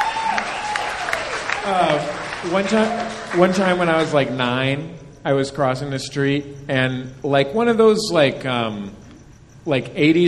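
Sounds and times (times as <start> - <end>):
audience clapping: 0.0 - 4.4
voices calling out and cheering: 0.0 - 4.4
speech: 1.6 - 9.0, 9.6 - 10.2.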